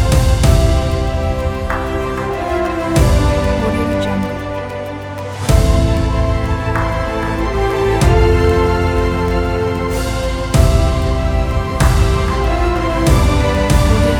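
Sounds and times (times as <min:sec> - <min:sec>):
epic cinematic trailer dubstep music: 0:00.0 - 0:14.1.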